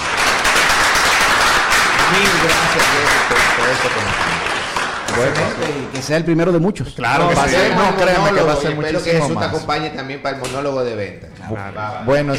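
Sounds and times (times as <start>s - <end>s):
applause: 0.0s - 6.3s
speech: 2.1s - 4.4s, 5.1s - 12.3s.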